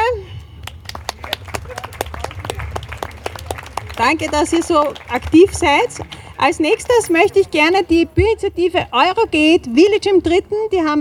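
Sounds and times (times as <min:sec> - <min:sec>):
crowd applause at outdoor demonstration: 0:00.6 - 0:08.0
speech: 0:04.0 - 0:10.9.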